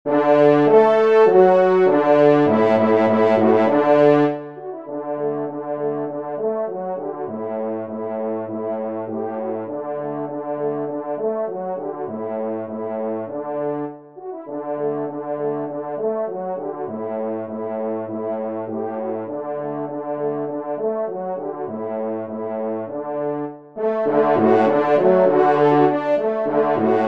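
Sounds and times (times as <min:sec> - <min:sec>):
horn: 0:00.1 - 0:27.0.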